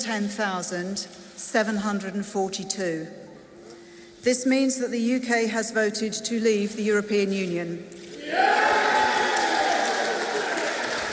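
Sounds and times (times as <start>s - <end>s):
speech: 0.0s - 3.2s, 4.2s - 8.9s
crowd clapping and cheering loudly: 8.2s - 11.1s.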